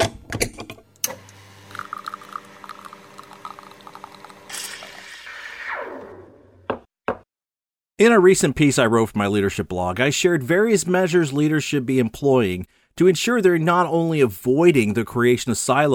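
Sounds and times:
espresso machine brewing: 1.0 - 5.6
speech: 8.0 - 15.9.

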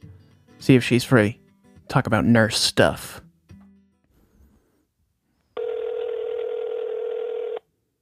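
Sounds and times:
speech: 0.6 - 3.2
outgoing phone call ringback tone: 5.6 - 7.7.

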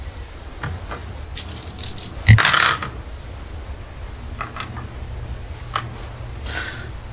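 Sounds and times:
soft hiss: 0.0 - 7.1
pink sparkly dice rolled during a tabletop game: 1.4 - 2.8.

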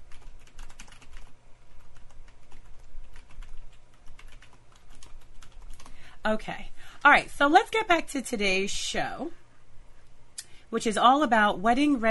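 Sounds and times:
computer keyboard typing a chat comment: 0.0 - 6.0
speech: 6.2 - 9.4, 10.7 - 12.0.

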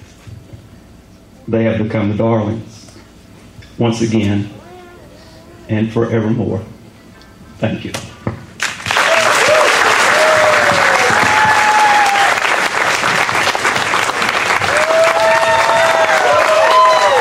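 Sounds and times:
speech: 1.5 - 2.8, 3.8 - 4.6, 5.7 - 6.7, 7.6 - 8.1
big crowd applauding: 8.6 - 17.1
people shouting: 9.1 - 12.4, 14.7 - 17.1.

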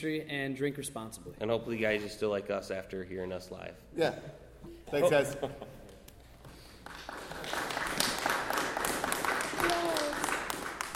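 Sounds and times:
speech: 0.0 - 5.8
audience applause: 6.8 - 10.9.

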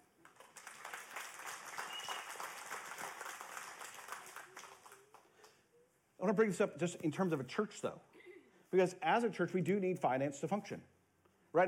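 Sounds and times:
church audience applause: 0.2 - 5.3
speech: 6.2 - 8.1, 8.7 - 10.9.

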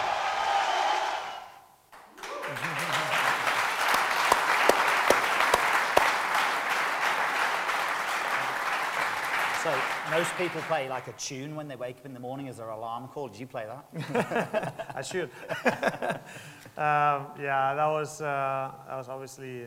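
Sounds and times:
large crowd applauding: 0.0 - 11.2
laughter: 2.2 - 3.7, 14.0 - 16.5
speech: 9.7 - 19.6.

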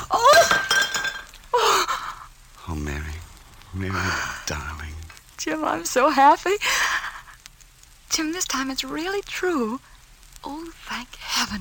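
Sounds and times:
platter dropped and breaking while washing dishes: 0.0 - 1.4
clattering platter fragments: 0.2 - 1.5
speech: 3.8 - 7.0, 8.2 - 11.6.

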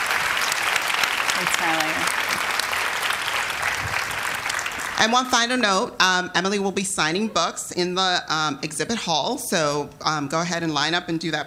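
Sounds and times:
audience applause: 0.0 - 5.4
speech: 1.4 - 2.5, 5.0 - 11.4.

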